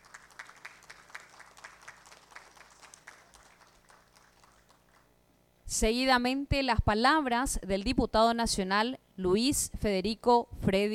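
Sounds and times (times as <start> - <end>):
applause for honorees: 0.0 - 5.1
speech: 5.8 - 10.9.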